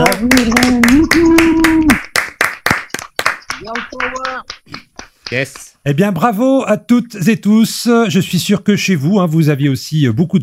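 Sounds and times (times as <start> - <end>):
audience clapping: 0.0 - 5.8
speech: 0.2 - 1.2, 5.3 - 10.4.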